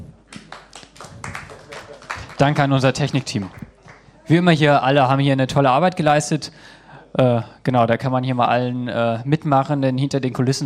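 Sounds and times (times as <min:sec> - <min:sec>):
audience applause: 0:00.2 - 0:04.2
speech: 0:02.4 - 0:03.6, 0:04.3 - 0:10.6.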